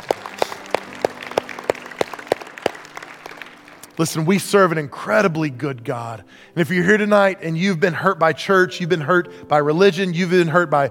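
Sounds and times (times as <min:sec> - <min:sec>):
audience applause: 0:00.0 - 0:04.0
evenly spaced sharp claps: 0:00.0 - 0:04.0
speech: 0:04.0 - 0:10.8.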